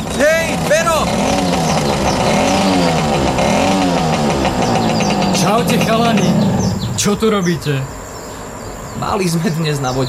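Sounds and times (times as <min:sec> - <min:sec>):
motorcycle engine revving: 0:00.0 - 0:07.5
speech: 0:05.5 - 0:08.0, 0:09.0 - 0:10.0.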